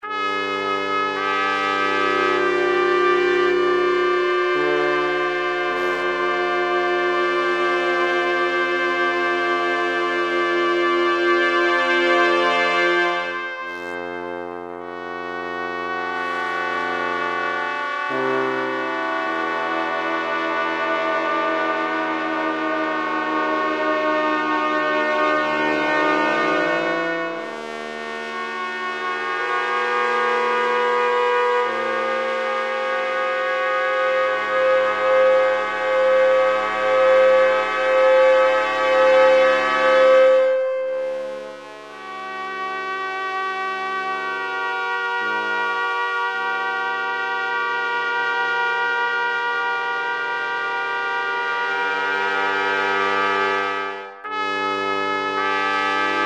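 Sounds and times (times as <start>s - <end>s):
trumpet song: 0.0s - 56.2s.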